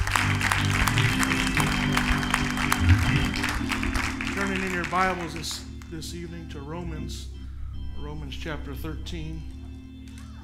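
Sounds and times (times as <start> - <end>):
audience clapping hands in praise: 0.0 - 6.0
speech: 4.8 - 7.3, 8.0 - 9.6.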